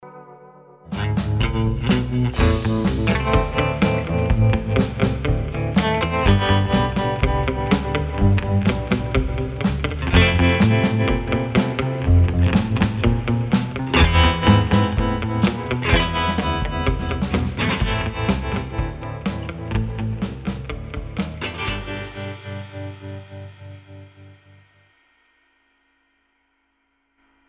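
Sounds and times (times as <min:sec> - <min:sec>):
groove music: 0:00.9 - 0:22.1.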